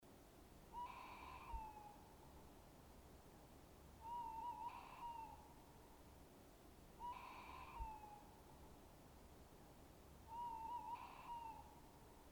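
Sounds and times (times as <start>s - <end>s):
low background hiss: 0.0s - 12.3s
tawny owl hooting: 0.7s - 2.0s, 4.0s - 5.5s, 7.0s - 8.4s, 10.3s - 11.8s.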